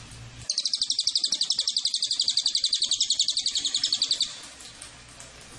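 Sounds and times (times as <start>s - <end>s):
cililin giving a fast high dry pulsed trill: 0.5s - 4.5s.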